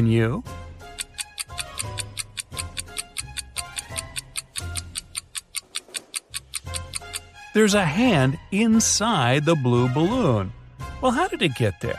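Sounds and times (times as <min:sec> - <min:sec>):
speech: 0:00.0 - 0:00.6, 0:07.6 - 0:11.9
low pulsing suspenseful musical bed: 0:00.0 - 0:05.4, 0:06.4 - 0:11.9
ticking clock countdown timer: 0:00.9 - 0:07.3.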